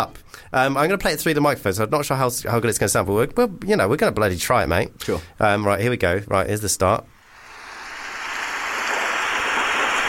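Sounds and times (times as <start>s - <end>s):
speech: 0.0s - 7.2s
rain sound effect: 7.4s - 10.0s.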